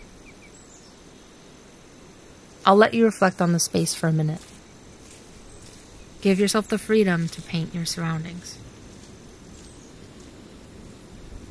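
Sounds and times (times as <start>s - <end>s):
birds singing: 0.0s - 1.6s, 4.4s - 10.7s
soft breeze: 0.0s - 11.4s
speech: 2.6s - 4.5s, 6.2s - 8.7s.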